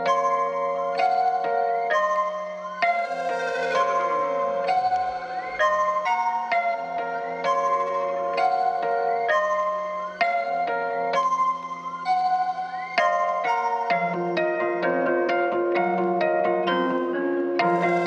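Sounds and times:
trap melody in A# minor: 0:00.1 - 0:11.4, 0:12.1 - 0:18.0.

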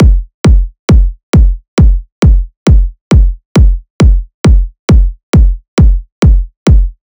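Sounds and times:
techno kick drum loop at 135 bpm: 0:00.0 - 0:07.0.

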